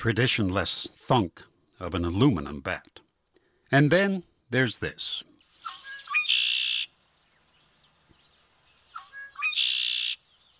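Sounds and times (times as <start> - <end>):
speech: 0.0 - 3.0, 3.7 - 5.3
red-winged blackbird calling from its perch in the reeds: 5.4 - 10.5.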